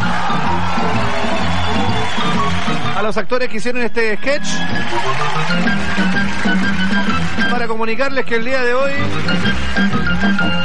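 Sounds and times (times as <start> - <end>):
audience applause for the actors: 0.0 - 3.2, 4.4 - 7.8, 9.2 - 10.6
speech: 3.0 - 5.7, 7.6 - 10.6.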